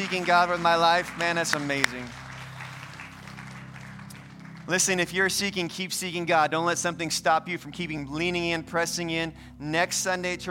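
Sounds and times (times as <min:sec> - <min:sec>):
speech: 0:00.0 - 0:02.2, 0:04.7 - 0:10.5
audience applause: 0:00.0 - 0:05.1.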